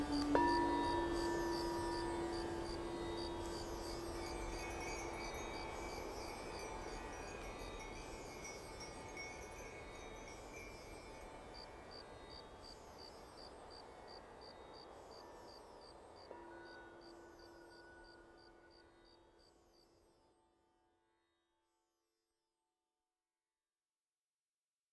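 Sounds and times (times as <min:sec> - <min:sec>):
Native American flute melody: 0:00.0 - 0:04.2
crickets chirping: 0:00.0 - 0:19.1.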